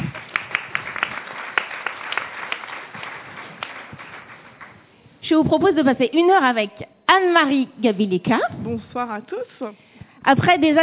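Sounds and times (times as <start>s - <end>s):
audience applause: 0.0s - 4.9s
speech: 5.3s - 10.8s.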